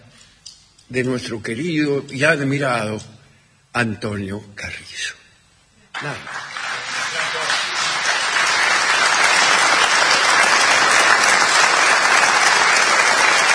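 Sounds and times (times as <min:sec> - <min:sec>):
speech: 0:00.9 - 0:05.2, 0:06.0 - 0:06.5
audience applause: 0:05.9 - 0:13.5.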